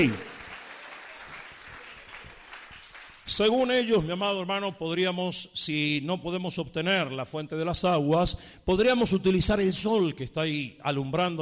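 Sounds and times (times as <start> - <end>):
speech: 0.0 - 0.3, 3.3 - 11.4
faint applause from a church congregation: 0.0 - 3.3.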